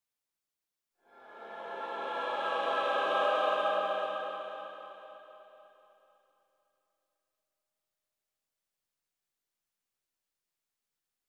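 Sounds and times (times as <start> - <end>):
choir singing: 1.0 - 6.0.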